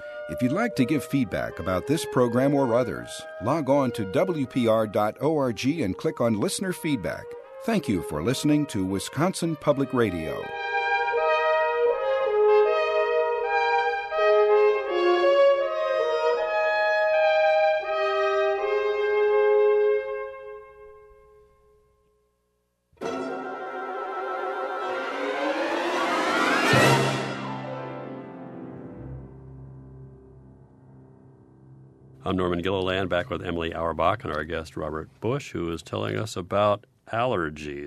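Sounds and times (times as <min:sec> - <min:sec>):
soft orchestral phrases: 0:00.0 - 0:20.4, 0:23.0 - 0:29.4
speech: 0:00.3 - 0:10.7, 0:32.3 - 0:37.8
loud full-orchestra chord imitating a sneeze: 0:10.1 - 0:20.8, 0:23.0 - 0:33.0.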